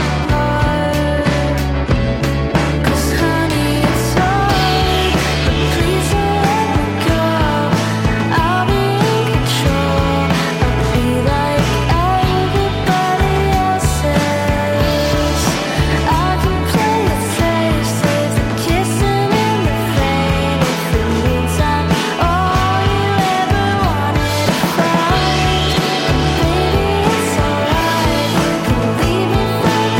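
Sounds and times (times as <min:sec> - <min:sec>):
death metal music: 0:00.0 - 0:29.9.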